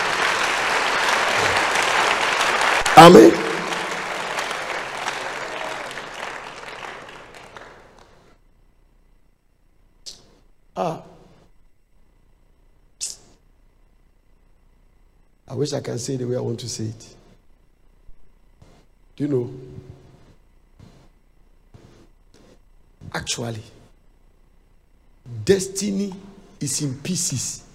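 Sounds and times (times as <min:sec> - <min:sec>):
audience clapping: 0:00.0 - 0:08.3
speech: 0:03.0 - 0:03.4, 0:15.6 - 0:17.2, 0:19.2 - 0:19.9, 0:23.2 - 0:23.8, 0:25.4 - 0:27.7.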